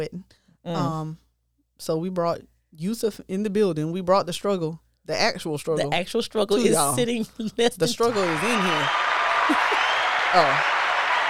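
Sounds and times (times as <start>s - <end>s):
speech: 0.0s - 1.2s, 1.8s - 9.7s, 10.3s - 10.7s
applause: 7.9s - 11.2s.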